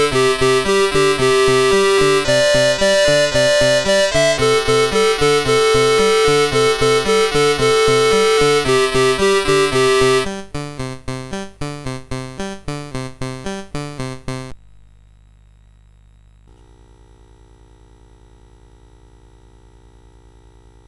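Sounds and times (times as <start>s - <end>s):
CSG 8580 sound chip: 0.0s - 14.5s.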